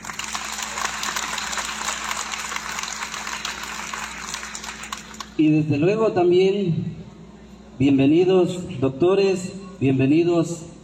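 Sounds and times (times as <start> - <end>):
sustained audience applause: 0.0 - 5.4
speech: 5.4 - 7.0, 7.8 - 10.7.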